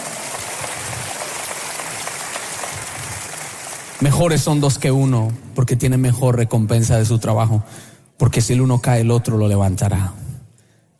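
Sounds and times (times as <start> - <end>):
audience applause: 0.0 - 5.0
speech: 4.0 - 10.2.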